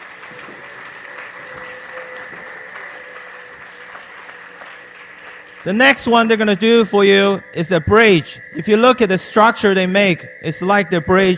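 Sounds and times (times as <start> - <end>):
audience applause: 0.0 - 7.4
speech: 5.6 - 11.3.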